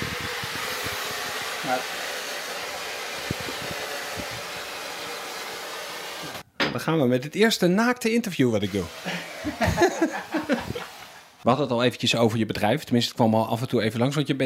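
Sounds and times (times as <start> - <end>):
water poured on hot sauna stones hissing: 0.0 - 6.4, 8.8 - 11.4
speech: 1.6 - 2.0, 6.8 - 10.7, 11.4 - 14.4
laughter: 9.1 - 11.1.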